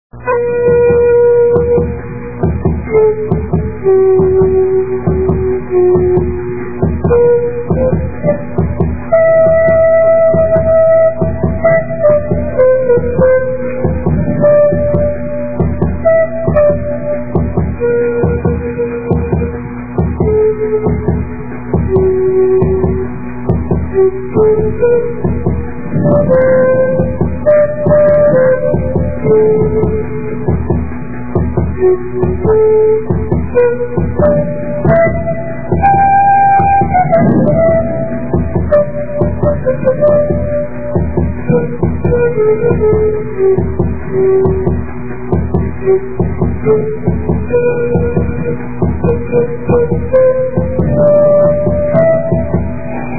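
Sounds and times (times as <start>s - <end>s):
pan flute: 0.1s - 53.1s.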